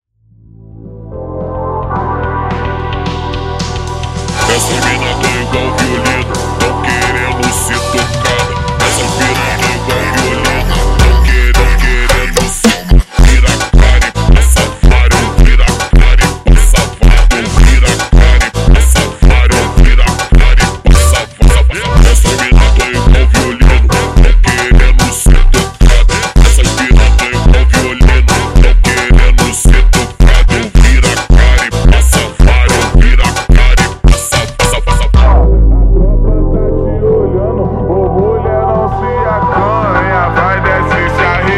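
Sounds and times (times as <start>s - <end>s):
super slowed funk music: 0.5s - 41.5s.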